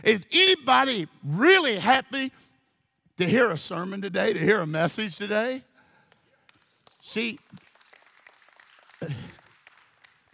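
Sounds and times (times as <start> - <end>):
speech: 0.0 - 2.4, 3.2 - 5.7, 7.0 - 7.7
golf clap from a church congregation: 6.1 - 10.3.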